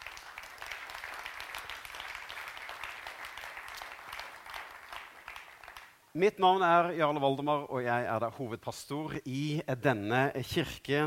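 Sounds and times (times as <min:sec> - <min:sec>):
audience applause: 0:00.0 - 0:05.9
speech: 0:06.2 - 0:11.0.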